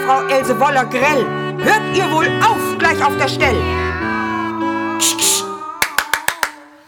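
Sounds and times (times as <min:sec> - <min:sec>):
speech: 0:00.2 - 0:03.8, 0:05.0 - 0:05.4
loud hand clapping: 0:05.8 - 0:06.8.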